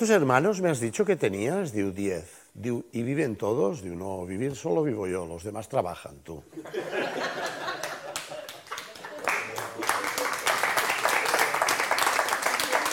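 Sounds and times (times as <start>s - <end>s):
speech: 0.0s - 7.6s
laughter: 6.6s - 10.3s
audience applause and clapping: 7.4s - 12.9s.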